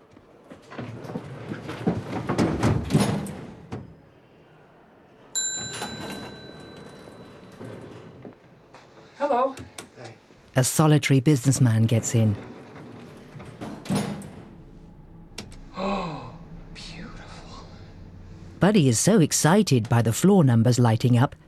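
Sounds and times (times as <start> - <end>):
elevator doors sliding and bumping shut: 0.5 - 4.1, 5.4 - 9.8, 11.3 - 21.4
speech: 9.2 - 12.5, 18.7 - 21.4
low mechanical hum: 12.4 - 20.3
brief vocal sounds: 15.6 - 18.0.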